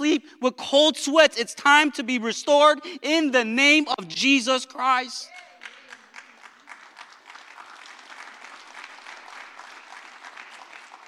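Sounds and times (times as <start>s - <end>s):
speech: 0.1s - 5.4s
audience applause: 5.3s - 11.0s.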